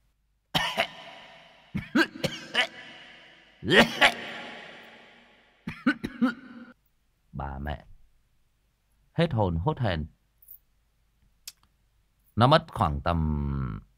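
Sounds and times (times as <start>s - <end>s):
coughing: 0.5s - 6.8s
speech: 3.6s - 4.2s, 9.2s - 10.2s, 12.4s - 13.9s.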